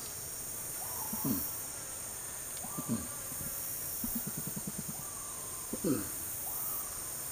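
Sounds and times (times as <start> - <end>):
lork call: 1.0 - 1.5, 2.6 - 3.2, 4.0 - 6.2.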